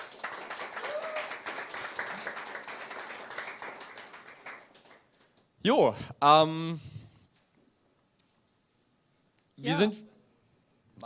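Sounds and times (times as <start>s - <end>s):
audience applause for the event's setup helpers: 0.0s - 5.6s
speech: 5.6s - 6.9s, 9.8s - 10.1s.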